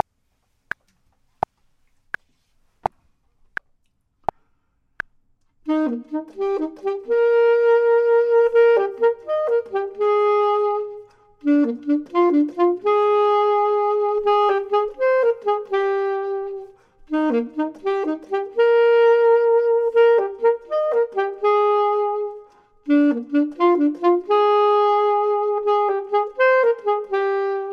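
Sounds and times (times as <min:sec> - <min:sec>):
clarinet: 0:05.7 - 0:27.7
saxophone: 0:05.7 - 0:27.7.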